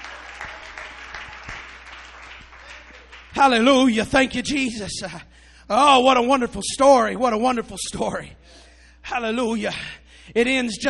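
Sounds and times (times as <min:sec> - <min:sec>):
audience clapping hands: 0:00.0 - 0:03.9
speech: 0:03.4 - 0:10.8.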